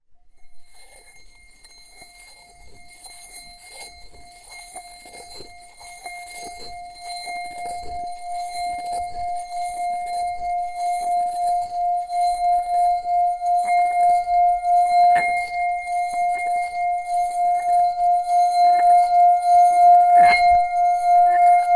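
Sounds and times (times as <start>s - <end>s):
Tibetan singing bowl: 0.2s - 21.7s.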